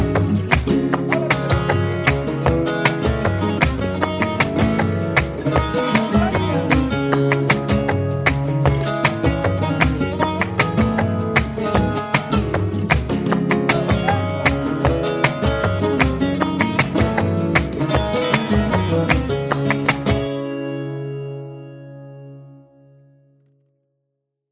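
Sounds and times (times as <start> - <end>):
guitar falseta in tangos style: 0.0 - 23.6.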